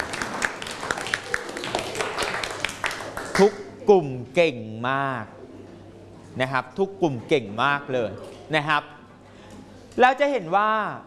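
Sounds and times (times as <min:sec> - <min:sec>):
students clapping for a classmate: 0:00.0 - 0:03.6
speech: 0:03.4 - 0:05.4, 0:06.4 - 0:09.0, 0:10.0 - 0:11.0.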